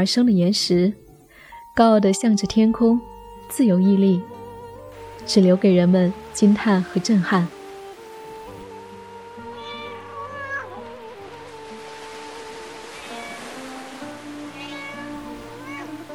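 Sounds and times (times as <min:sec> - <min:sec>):
speech: 0:00.0 - 0:01.0, 0:01.8 - 0:04.4, 0:05.2 - 0:07.6
cat meowing: 0:09.5 - 0:11.1, 0:12.9 - 0:13.6, 0:14.5 - 0:16.1.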